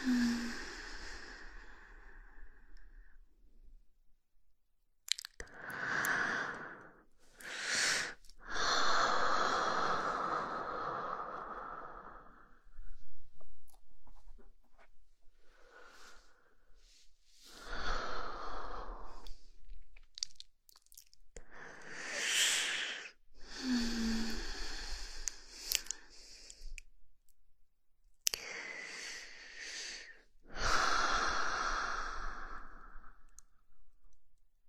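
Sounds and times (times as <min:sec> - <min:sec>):
slow breathing: 0:00.0 - 0:03.2, 0:05.5 - 0:14.3, 0:15.3 - 0:19.8, 0:21.5 - 0:26.8, 0:28.3 - 0:33.6.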